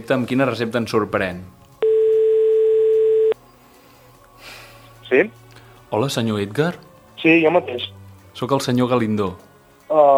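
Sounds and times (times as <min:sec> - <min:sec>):
speech: 0:00.0 - 0:01.6, 0:05.1 - 0:10.1
telephone ringing tone of an outgoing call: 0:01.8 - 0:03.4.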